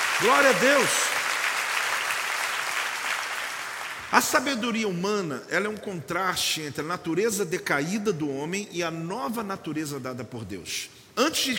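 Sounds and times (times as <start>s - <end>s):
audience applause: 0.0s - 4.1s
speech: 0.2s - 1.0s, 4.1s - 11.5s.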